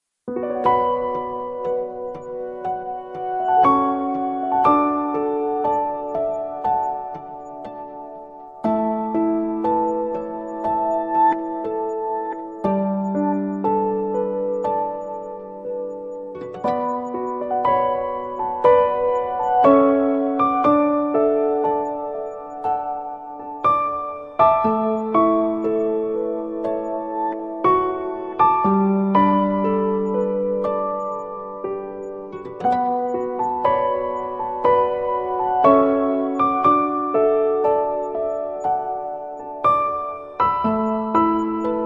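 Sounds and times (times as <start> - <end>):
instrumental music: 0.3 - 41.8.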